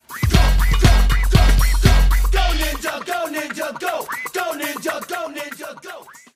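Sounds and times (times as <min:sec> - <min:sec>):
ninja-themed rapping: 0:00.3 - 0:06.3.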